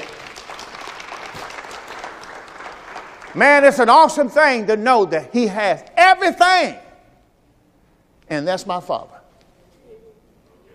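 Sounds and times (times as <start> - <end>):
audience clapping hands: 0.0 - 4.2
speech: 3.3 - 6.8, 8.3 - 9.2.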